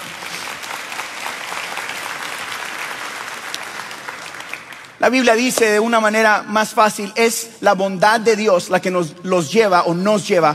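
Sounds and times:
audience applause: 0.0 - 5.0
speech: 5.0 - 10.5.

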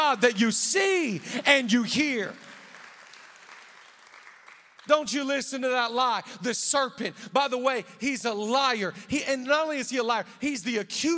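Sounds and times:
speech: 0.1 - 2.6, 4.9 - 11.1
audience applauding in praise: 2.0 - 4.9.

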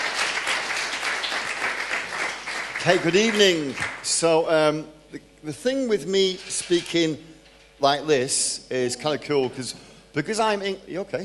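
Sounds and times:
crowd applause welcoming a speaker: 0.0 - 4.2
speech: 2.8 - 11.2.

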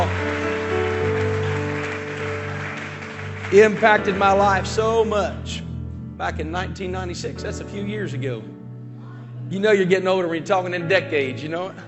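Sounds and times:
audience applause welcoming a guest speaker at a church service: 0.0 - 5.1
sustained keyboard chords: 0.0 - 11.8
speech: 3.5 - 5.6, 6.2 - 8.6, 9.5 - 11.8.

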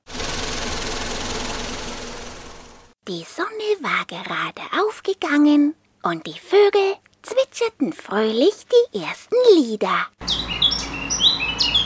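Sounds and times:
small vehicle engine running along a path: 0.0 - 3.0, 10.2 - 11.8
speech: 3.1 - 10.4.

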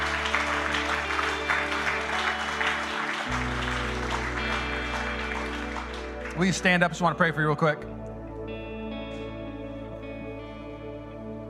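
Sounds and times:
whole room clapping: 0.0 - 7.6
speech: 6.4 - 8.0.

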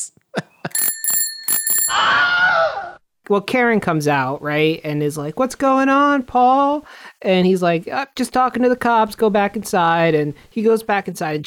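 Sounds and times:
bicycle bell sound effect ringing: 0.7 - 2.0
speech: 3.3 - 11.4.

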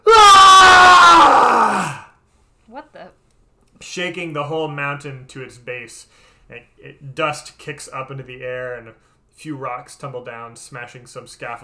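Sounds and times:
thunderous scream of rage echoing: 0.0 - 2.1
speech: 4.0 - 11.6.

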